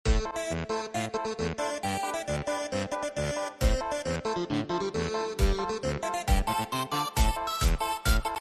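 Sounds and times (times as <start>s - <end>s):
goofy tribal music: 0.1s - 8.3s.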